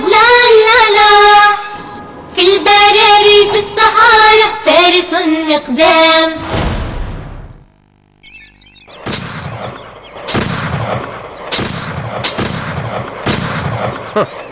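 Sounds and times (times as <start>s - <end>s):
rumbling noise: 0.0s - 14.5s
speech: 5.6s - 6.4s
gunshots: 8.9s - 14.5s.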